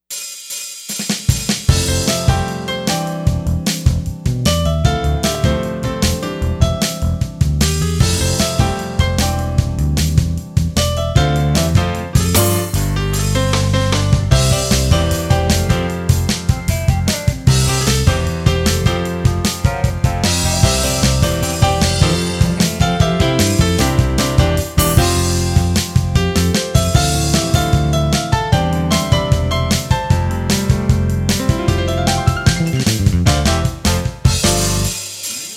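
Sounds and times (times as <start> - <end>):
piano: 1.3 - 35.5.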